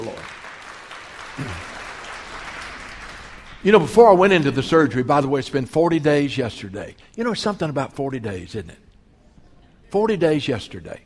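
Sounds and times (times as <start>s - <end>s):
audience applause: 0.0s - 4.7s
speech: 1.4s - 1.7s, 3.6s - 8.8s, 9.9s - 11.0s.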